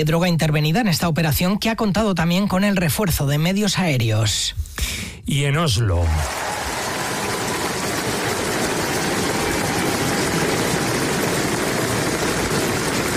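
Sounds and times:
speech: 0.0 - 6.5
crowd applauding in ovation in square: 6.0 - 13.1.

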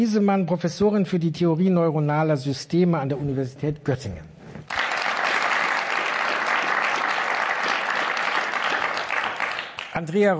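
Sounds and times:
speech: 0.0 - 4.3, 10.0 - 10.3
audience applause: 4.7 - 10.0.

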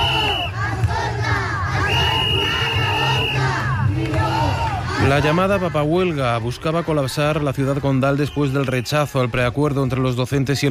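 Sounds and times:
high steady whistle: 0.0 - 0.6, 1.8 - 3.5
crowd of protesting teachers chanting and shouting: 0.0 - 10.6
speech: 5.1 - 10.6.

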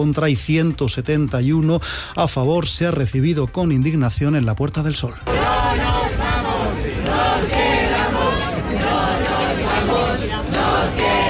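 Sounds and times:
speech: 0.0 - 5.8
protest crowd chanting and shouting: 5.2 - 11.2.

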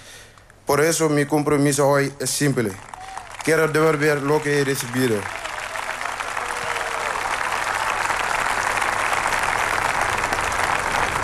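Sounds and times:
speech: 0.7 - 5.5
audience applause after a speech: 2.8 - 11.2.

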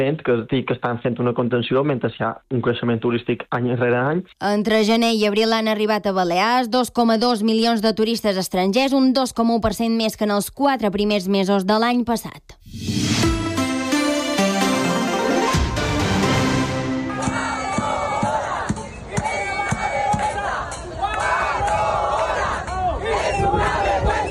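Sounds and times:
speech: 0.0 - 13.4
tonal music: 12.9 - 19.0
Palma airport reduced-mobility assistance workers chanting and shouting at a protest: 13.4 - 24.3.

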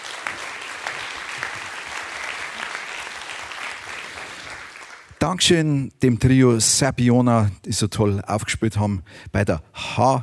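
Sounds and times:
audience applause: 0.0 - 5.2
speech: 5.2 - 10.2.

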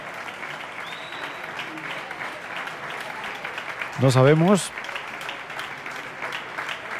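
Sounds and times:
concert audience applause: 0.0 - 6.9
speech: 4.0 - 4.8.

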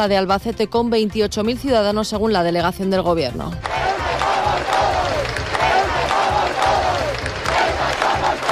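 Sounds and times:
speech: 0.0 - 4.0
large crowd chanting outdoors at a street rally: 3.6 - 8.5.

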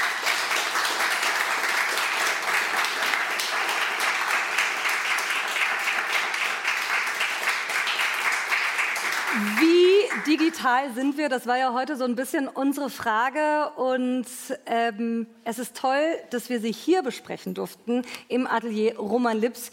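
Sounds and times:
audience applause: 0.0 - 10.6
speech: 10.2 - 19.7.

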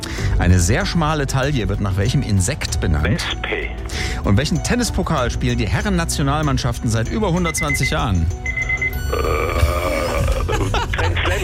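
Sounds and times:
speech: 0.4 - 9.7
timer alarm ringing: 7.5 - 9.4
laughter: 10.0 - 11.4.

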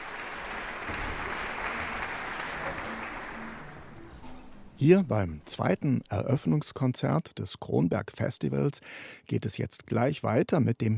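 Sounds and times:
concert audience applause at Casals-Forum in Kronberg: 0.0 - 4.1
speech: 4.8 - 10.9.

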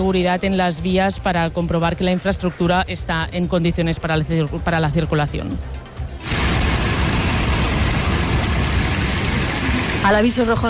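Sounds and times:
speech: 0.0 - 5.8, 10.0 - 10.6
hail falling in the south of Extremadura: 6.2 - 10.3.

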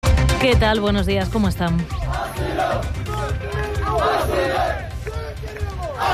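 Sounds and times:
speech: 0.4 - 4.9
dozens of migrants shouting on beach: 1.9 - 6.1.

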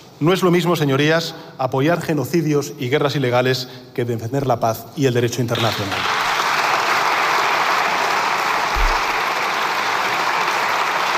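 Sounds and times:
speech: 0.2 - 6.2
applause from parliamentary benches: 5.6 - 11.1.

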